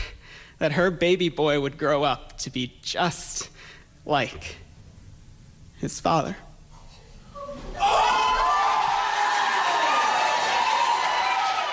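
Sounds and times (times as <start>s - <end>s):
speech: 0.6s - 4.6s, 5.8s - 6.5s
audience applause at end of speech: 7.8s - 11.7s.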